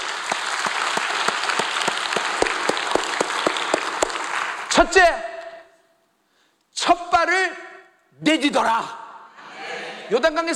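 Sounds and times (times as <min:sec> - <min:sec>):
audience applause: 0:00.0 - 0:04.8
speech: 0:04.8 - 0:05.3, 0:08.2 - 0:09.0, 0:10.1 - 0:10.5.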